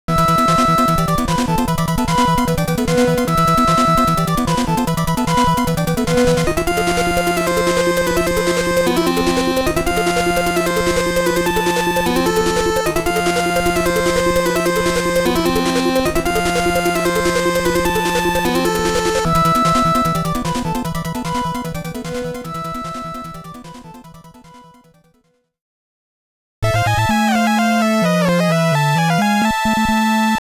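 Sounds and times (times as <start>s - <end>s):
boss clear game background music: 0.1s - 25.0s, 26.6s - 30.4s.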